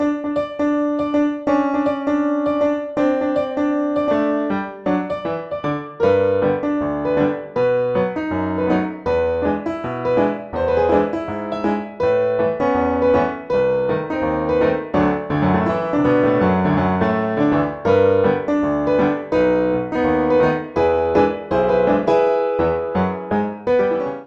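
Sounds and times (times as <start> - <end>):
ragtime music: 0.0 - 24.2.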